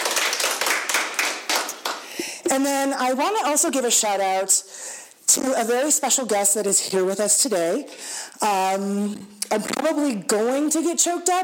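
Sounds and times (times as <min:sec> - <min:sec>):
round of applause: 0:00.0 - 0:02.2
speech: 0:02.5 - 0:11.4.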